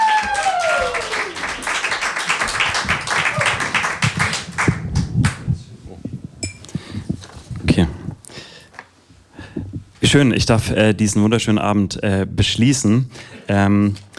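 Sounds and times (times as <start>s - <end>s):
audience applause: 0.0s - 5.5s
speech: 10.1s - 14.0s.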